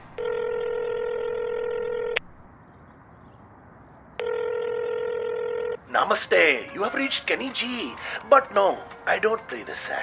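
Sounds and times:
telephone ringback tone: 0.1 - 2.4, 4.2 - 5.8
speech: 6.0 - 10.0.

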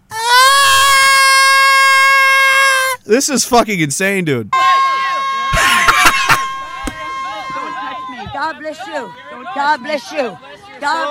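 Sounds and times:
child screaming and crying: 0.1 - 3.0
speech: 3.1 - 4.6, 8.5 - 11.1
laughter: 5.0 - 8.3.

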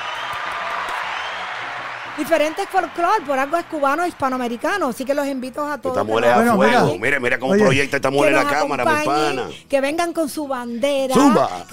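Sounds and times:
audience applause: 0.0 - 5.3
speech: 2.2 - 11.7.

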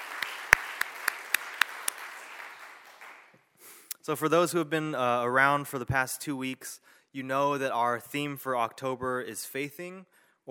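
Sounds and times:
audience applause: 0.0 - 3.3
speech: 4.0 - 10.4.

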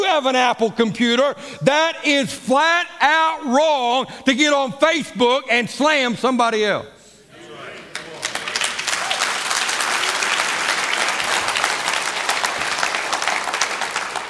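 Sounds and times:
speech: 0.2 - 7.0
audience applause: 7.9 - 14.2.

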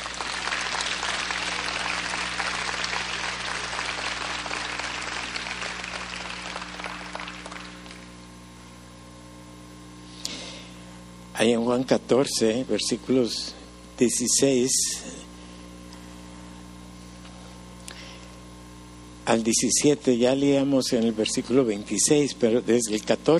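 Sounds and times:
audience applause: 0.0 - 8.2
speech: 11.4 - 15.2, 19.3 - 23.3.

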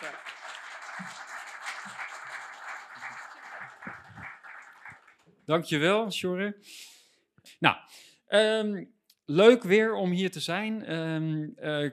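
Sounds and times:
audience applause: 0.0 - 5.2
speech: 5.5 - 6.9, 7.5 - 11.9.

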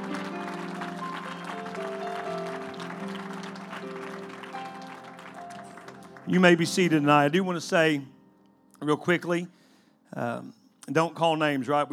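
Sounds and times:
audience clapping hands: 0.0 - 7.3
speech: 6.3 - 8.2, 8.8 - 11.9.

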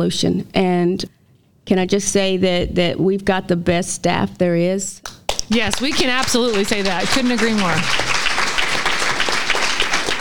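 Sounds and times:
speech: 0.0 - 8.1
audience clapping: 5.1 - 10.1.

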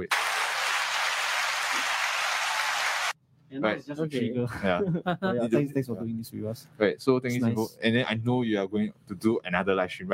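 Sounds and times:
people clapping hands: 0.0 - 3.2
speech: 3.5 - 10.1.

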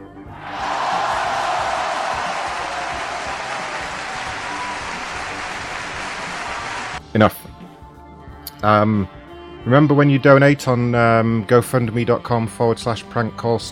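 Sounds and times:
crowd cheering: 0.3 - 7.0
speech: 7.1 - 7.4, 8.6 - 13.7.

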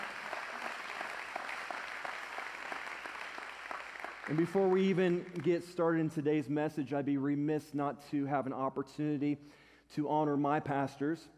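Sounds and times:
church congregation applauding during a Sunday sermon service: 0.0 - 5.8
speech: 4.3 - 11.3.

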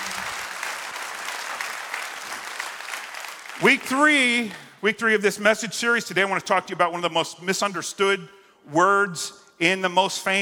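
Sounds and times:
audience clapping hands: 0.0 - 4.3
speech: 3.6 - 10.4.

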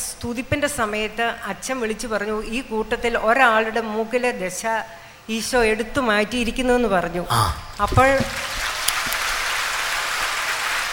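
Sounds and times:
speech: 0.2 - 8.4
congregation at a prayer service clapping with raised hands: 7.7 - 10.9.

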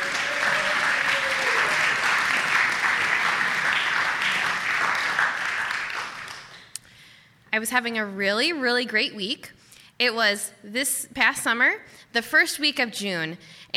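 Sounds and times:
audience clapping for a storyteller at a live storytelling show: 0.0 - 6.8
speech: 7.6 - 13.7.

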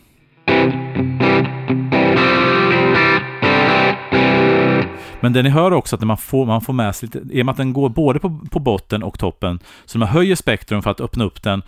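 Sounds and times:
distorted electric guitar chords through effect pedal with treble raised: 0.4 - 5.2
speech: 5.3 - 11.6.

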